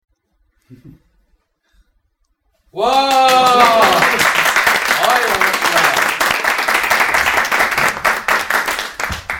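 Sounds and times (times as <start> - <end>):
speech: 0.7 - 1.1, 2.7 - 3.8
studio audience applause: 2.8 - 9.3
laughter: 3.2 - 4.4.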